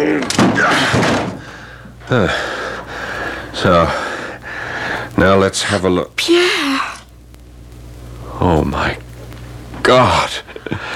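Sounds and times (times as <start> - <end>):
locked door being broken in: 0.0 - 1.5
speech: 2.1 - 2.6, 3.6 - 4.0, 5.2 - 6.9, 8.4 - 9.0, 9.8 - 10.9.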